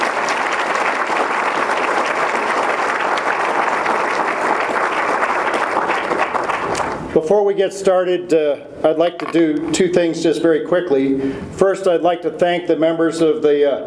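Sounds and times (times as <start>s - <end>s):
audience round of applause: 0.0s - 7.1s
speech: 7.2s - 13.8s.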